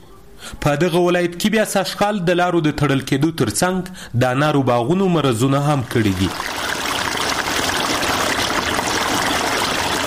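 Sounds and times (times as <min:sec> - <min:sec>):
speech: 0:00.6 - 0:06.5
irrigation water flowing into a pomegranate orchard in Spedkhar near Tarinkot, Afghanistan: 0:05.6 - 0:10.0.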